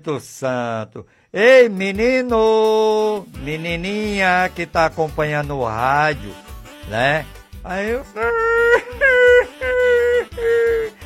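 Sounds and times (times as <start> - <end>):
speech: 0.0 - 9.1
child crying: 8.2 - 11.0.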